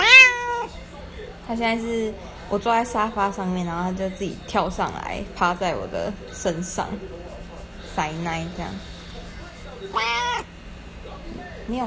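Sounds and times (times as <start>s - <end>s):
domestic cat meowing: 0.0s - 0.7s, 9.9s - 10.5s
speech: 1.5s - 7.2s, 8.0s - 8.9s, 9.8s - 10.5s, 11.3s - 11.8s.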